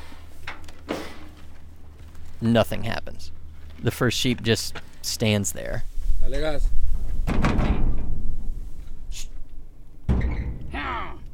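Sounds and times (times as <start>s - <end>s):
speech: 2.4s - 7.5s
livestock trailer door unlatched and swung open: 7.2s - 8.2s, 10.1s - 10.9s.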